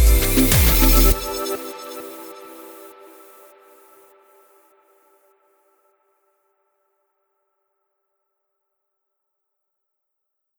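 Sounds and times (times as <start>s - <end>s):
electro ambient music intro: 0.0s - 4.5s.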